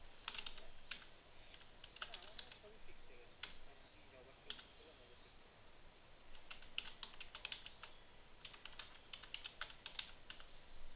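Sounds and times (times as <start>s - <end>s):
typing a reply on a computer keyboard: 0.2s - 2.6s, 4.5s - 4.7s, 6.3s - 10.5s.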